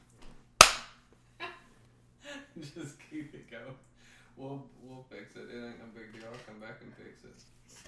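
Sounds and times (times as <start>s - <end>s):
hand clap for editing sync: 0.6s - 1.0s
speech: 2.6s - 7.8s.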